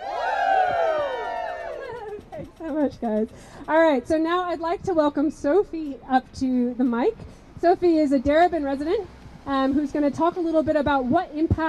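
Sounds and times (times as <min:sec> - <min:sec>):
crowd cheering woo: 0:00.0 - 0:02.2
speech: 0:02.7 - 0:11.6.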